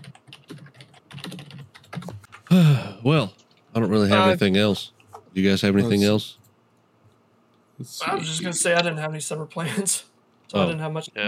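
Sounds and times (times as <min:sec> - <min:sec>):
typing on a computer keyboard: 0:00.0 - 0:02.5
speech: 0:02.5 - 0:06.4, 0:07.8 - 0:11.2.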